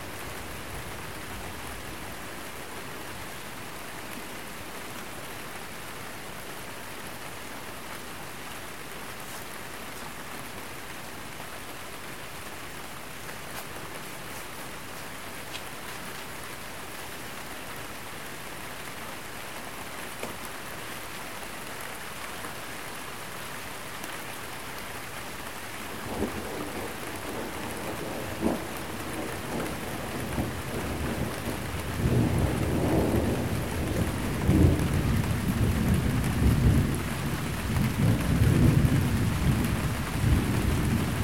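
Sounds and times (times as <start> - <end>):
light rain: 0.0 - 41.2
thunder: 26.1 - 41.2.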